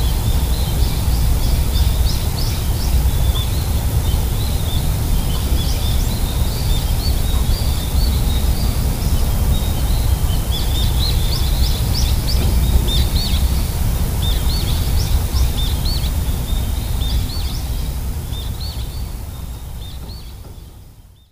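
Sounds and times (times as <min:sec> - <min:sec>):
birds at home: 0:00.0 - 0:21.3.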